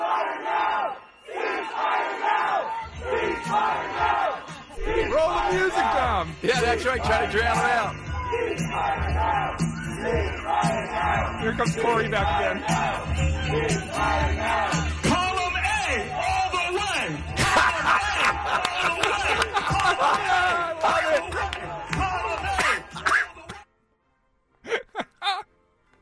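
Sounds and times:
crowd shouting: 0.0 - 23.6
speech: 5.2 - 15.2
laughter: 17.3 - 23.6, 24.7 - 25.5.

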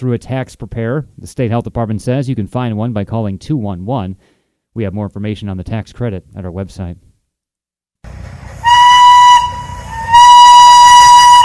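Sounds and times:
speech: 0.0 - 7.1
House of David steam-powered locomotive 902 running at the Michigan Flywheelers Museum: 8.1 - 11.4.

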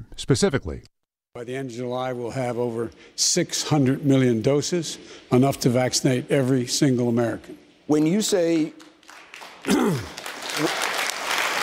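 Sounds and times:
speech: 0.2 - 8.9, 9.6 - 10.7
audience applause: 9.0 - 11.6.

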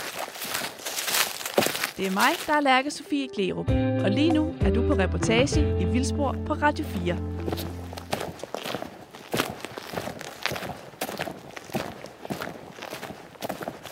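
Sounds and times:
footsteps walking across the open plain on Æbelø island: 0.0 - 3.0, 6.8 - 13.8
speech: 2.0 - 7.7.

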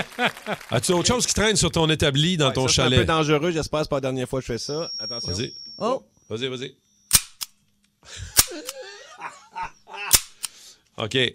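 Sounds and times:
laughter: 0.0 - 1.0, 8.1 - 10.2
speech: 0.0 - 6.8, 8.1 - 8.7, 11.0 - 11.3
large staple gun shooting staples: 7.1 - 7.6, 8.4 - 8.8, 10.1 - 10.5.

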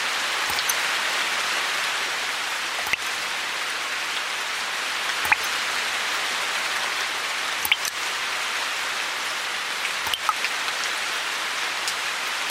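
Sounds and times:
rain hissing in June rainy season: 0.0 - 12.5
water dripping from a roof leak: 0.4 - 0.9, 2.7 - 3.3, 5.1 - 5.7, 7.6 - 8.0, 9.8 - 10.9.

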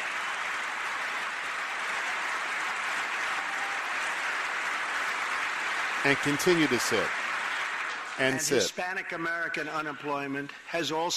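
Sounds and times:
steady applause from a large crowd: 0.0 - 8.7
speech: 6.0 - 7.2, 8.2 - 11.1.

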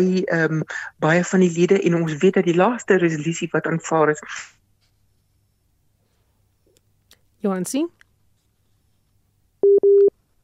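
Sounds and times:
speech: 0.0 - 4.6, 7.4 - 8.0, 9.6 - 10.1
telephone busy signal on dropped line: 9.6 - 10.1.

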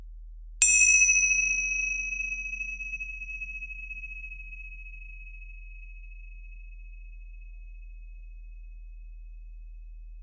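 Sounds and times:
meditation cymbals struck to open the practice: 0.6 - 4.8.

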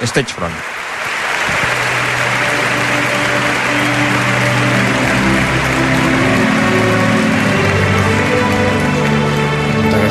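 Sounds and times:
speech: 0.0 - 0.8
crowd applause in stadium: 0.0 - 10.0.

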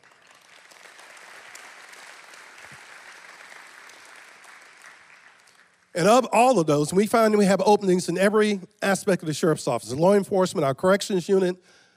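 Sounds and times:
audience applause: 0.0 - 6.0
speech: 6.0 - 11.8.

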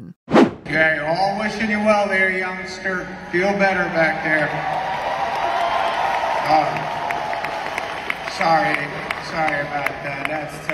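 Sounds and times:
speech: 0.7 - 5.1, 6.5 - 7.0, 8.3 - 10.7
audience applause: 3.9 - 10.7.

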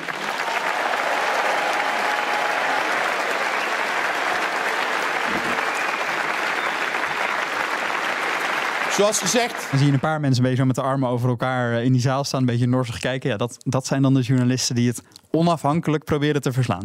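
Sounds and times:
thunderous applause at party congress: 0.0 - 10.4
speech: 9.0 - 16.8.

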